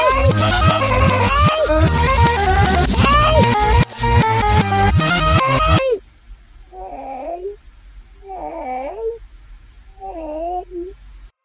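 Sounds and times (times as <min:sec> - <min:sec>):
person exclaiming waoah: 0:00.0 - 0:06.0.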